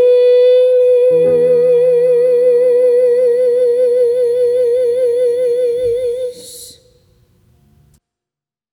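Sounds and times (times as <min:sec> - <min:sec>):
soprano singing a morning hymn: 0:00.0 - 0:06.9.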